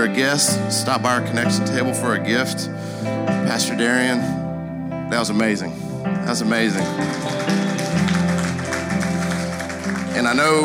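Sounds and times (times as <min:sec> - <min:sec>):
speech: 0:00.0 - 0:04.4, 0:05.1 - 0:08.2, 0:10.1 - 0:10.6
sustained keyboard chords: 0:00.0 - 0:10.6
audience clapping: 0:06.7 - 0:10.6.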